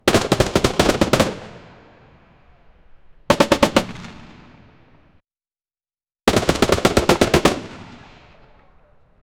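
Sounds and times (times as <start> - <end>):
16th-century cannons: 0.0 - 2.2, 3.3 - 5.1, 6.3 - 8.7.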